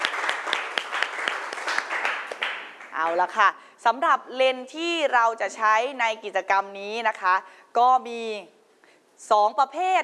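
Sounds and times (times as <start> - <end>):
classroom applause for a student group: 0.0 - 3.2
speech: 3.0 - 8.6, 9.2 - 10.0.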